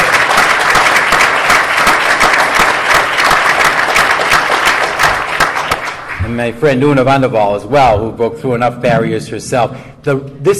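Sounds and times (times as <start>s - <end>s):
audience applause: 0.0s - 6.3s
speech: 6.4s - 10.5s.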